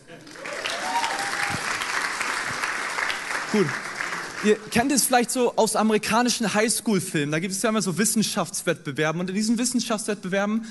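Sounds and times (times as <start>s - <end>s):
audience applause: 0.1s - 4.8s
speech: 3.5s - 10.6s.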